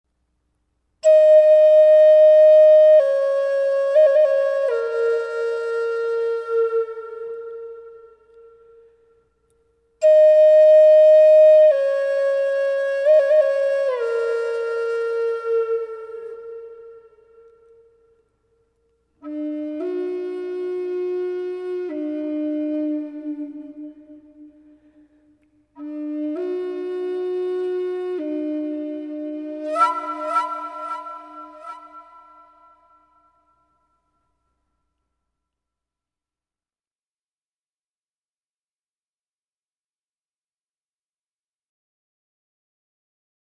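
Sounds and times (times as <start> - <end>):
flute: 1.0 - 35.0.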